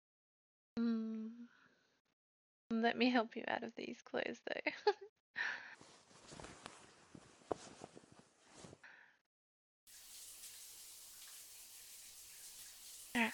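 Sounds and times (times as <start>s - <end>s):
speech: 0.8s - 1.4s, 2.8s - 5.7s, 13.2s - 13.3s
rustling and light clattering movement: 5.8s - 8.8s
shower water running: 9.9s - 13.3s.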